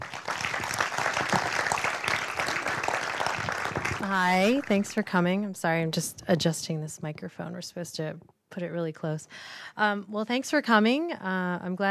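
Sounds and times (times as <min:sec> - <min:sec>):
audience clapping to welcome a speaker at a talk on caring for veterans: 0:00.0 - 0:05.0
speech: 0:04.1 - 0:11.8.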